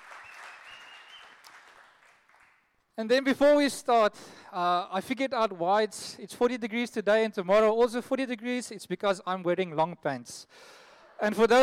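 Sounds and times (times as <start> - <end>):
round of applause from a group: 0.0 - 2.8
speech: 3.0 - 11.6.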